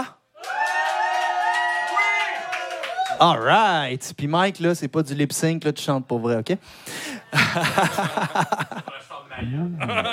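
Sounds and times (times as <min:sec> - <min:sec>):
studio crowd cheering: 0:00.0 - 0:03.7
speech: 0:03.2 - 0:10.1
laughter: 0:07.3 - 0:10.1.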